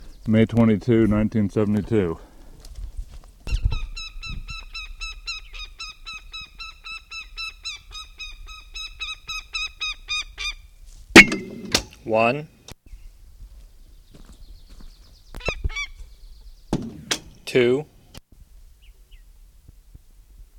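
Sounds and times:
speech: 0.2 - 2.3, 12.2 - 12.6, 17.5 - 17.9
northern goshawk calling at its nest: 4.0 - 10.6, 15.4 - 16.0.

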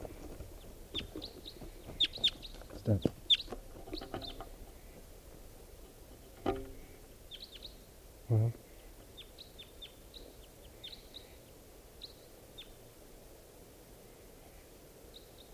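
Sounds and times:
wild bird chirping: 0.0 - 5.0, 6.7 - 8.0, 8.6 - 12.8, 15.1 - 15.5
speech: 2.9 - 3.2.

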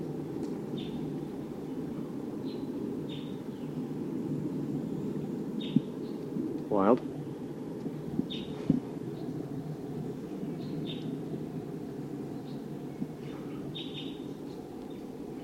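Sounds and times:
wild bird V-shaped flight call notes: 0.0 - 15.4
speech: 6.7 - 7.1.

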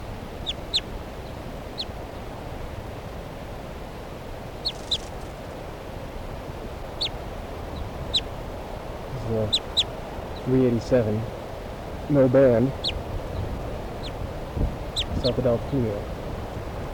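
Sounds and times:
soft alternate type 2 bird flight calls in trees: 0.0 - 2.0, 4.5 - 5.6, 6.8 - 16.0
speech: 10.5 - 11.4, 12.1 - 12.9, 15.2 - 16.1.

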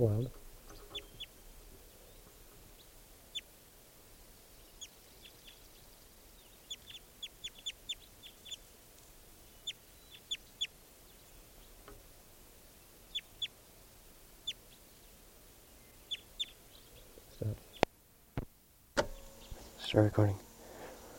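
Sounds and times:
speech: 0.0 - 0.4, 20.0 - 20.5
low hiss: 0.0 - 21.1
male bird giving chip calls: 0.6 - 3.6, 4.4 - 8.8, 9.4 - 11.8, 12.8 - 13.6, 14.4 - 17.9.

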